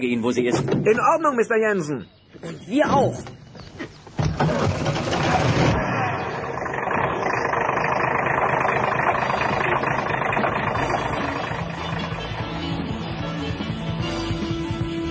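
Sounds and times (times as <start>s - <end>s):
speech: 0.0s - 3.4s
car engine driving through a partly burning forest: 4.3s - 15.0s.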